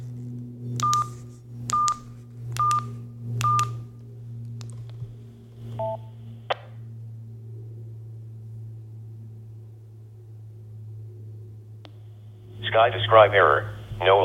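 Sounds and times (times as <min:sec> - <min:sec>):
steady low hum: 0:00.0 - 0:14.2
DTMF touch tones entering code on radio: 0:00.8 - 0:01.1, 0:03.4 - 0:03.8, 0:05.8 - 0:06.1
speech: 0:12.8 - 0:14.2.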